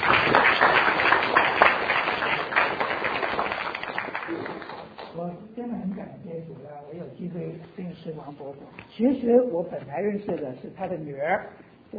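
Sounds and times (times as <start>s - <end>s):
crowd applause: 0.0s - 5.0s
speech: 8.0s - 11.9s.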